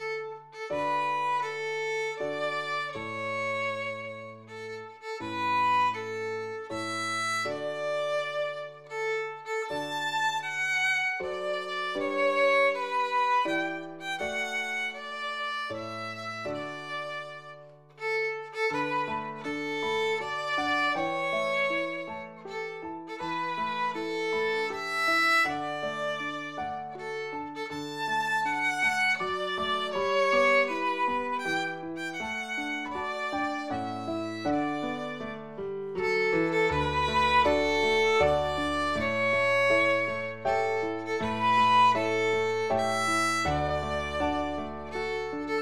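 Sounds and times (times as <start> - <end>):
violin: 0.0 - 45.6.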